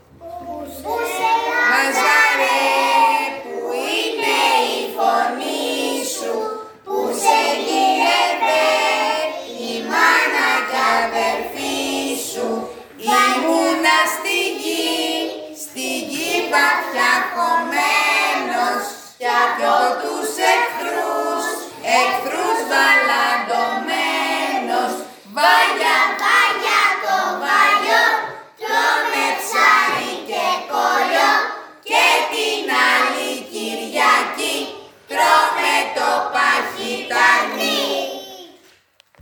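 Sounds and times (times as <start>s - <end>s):
Greek carol singing: 0.7s - 38.1s.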